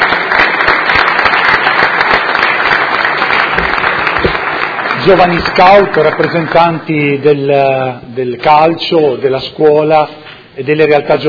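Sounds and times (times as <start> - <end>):
audience applause: 0.0 - 6.8
speech: 5.0 - 11.2.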